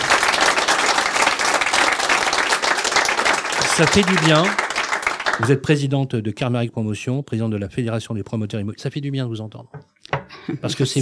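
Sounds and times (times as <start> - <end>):
audience applause: 0.0 - 5.6
speech: 3.8 - 4.6, 5.4 - 11.0.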